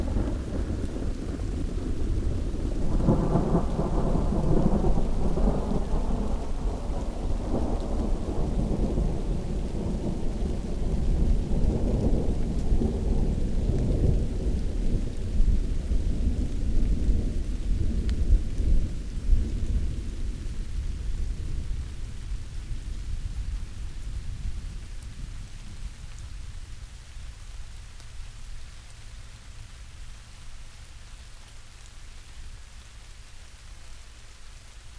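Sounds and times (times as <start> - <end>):
thunder: 0.0 - 20.4
rain: 0.0 - 34.9.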